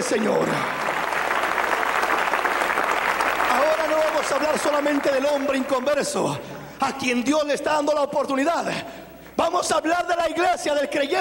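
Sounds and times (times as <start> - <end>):
church congregation clapping hands during a sermon: 0.0 - 6.8
speech: 0.1 - 0.9, 4.2 - 11.2.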